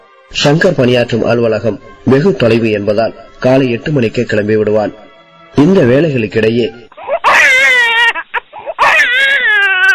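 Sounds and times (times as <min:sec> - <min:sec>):
speech: 0:00.3 - 0:06.8
infant crying: 0:06.9 - 0:09.9.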